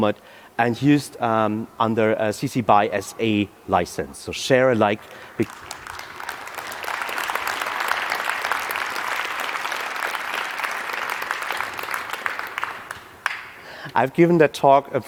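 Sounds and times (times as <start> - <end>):
speech: 0.0 - 5.7, 14.0 - 15.0
audience applause: 5.0 - 13.6.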